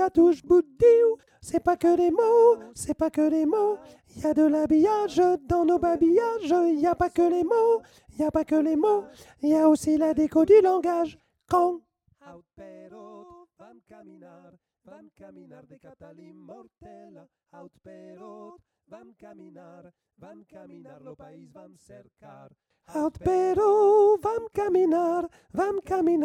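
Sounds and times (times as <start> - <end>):
soprano singing: 0.0 - 11.8, 23.0 - 26.2.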